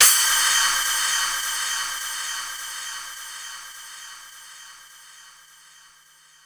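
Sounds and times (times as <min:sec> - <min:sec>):
Korg 05R-W splash cymbal: 0:00.0 - 0:03.1.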